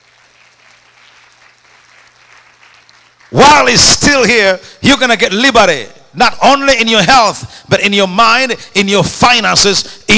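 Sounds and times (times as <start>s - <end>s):
people clapping: 0.0s - 4.2s
speech: 3.3s - 10.1s.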